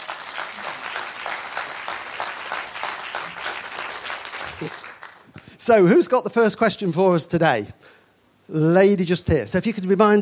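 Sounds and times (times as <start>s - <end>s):
audience applause welcoming a gardening question panel onto the stage: 0.0s - 5.4s
speech: 5.6s - 7.8s, 8.5s - 10.2s.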